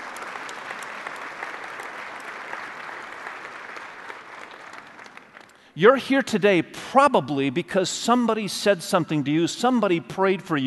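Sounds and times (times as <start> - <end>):
audience applause: 0.0 - 5.6
speech: 5.8 - 10.6.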